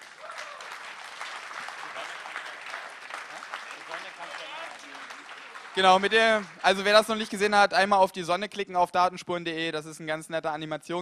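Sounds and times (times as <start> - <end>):
audience applause: 0.0 - 7.5
speech: 5.8 - 10.9.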